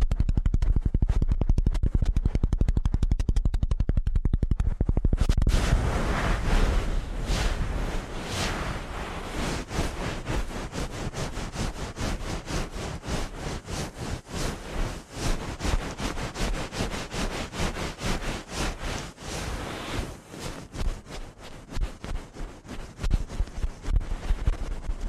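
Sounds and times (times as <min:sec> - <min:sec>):
deep fast thumping rumble of rapid ear cleaning: 0:00.0 - 0:25.0
dense crackling scratches of rapid ear cleaning: 0:00.0 - 0:25.0.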